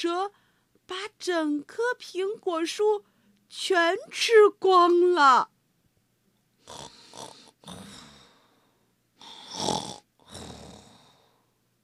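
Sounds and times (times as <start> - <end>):
speech: 0.0 - 5.5, 6.7 - 8.0
snoring: 6.6 - 8.6, 9.2 - 11.4.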